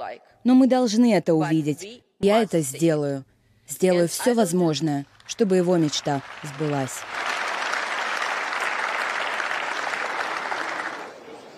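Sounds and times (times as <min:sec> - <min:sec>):
speech: 0:00.1 - 0:07.4
ovation from a large crowd in parliament: 0:05.6 - 0:11.5.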